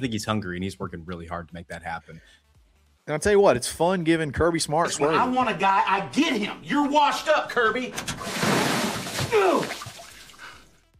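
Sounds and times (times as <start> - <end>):
speech: 0.0 - 2.5, 3.1 - 8.7, 9.3 - 9.8
water gushing and spraying out of a toilet: 8.1 - 10.6
person crying out: 9.2 - 10.0.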